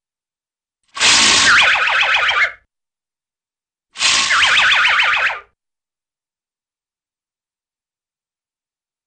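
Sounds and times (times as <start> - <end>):
cartoon whistle whirl: 1.0 - 2.6, 4.0 - 5.5.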